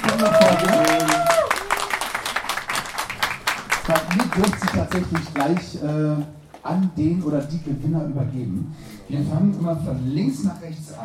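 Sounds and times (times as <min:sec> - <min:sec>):
audience applause: 0:00.0 - 0:06.1
speech: 0:04.4 - 0:11.0.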